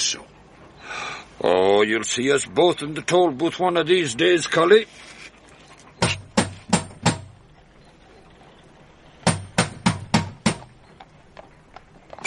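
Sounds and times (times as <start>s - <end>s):
speech: 0.1s - 0.3s, 1.4s - 5.1s
knocking on a door: 6.0s - 7.4s, 9.2s - 10.7s.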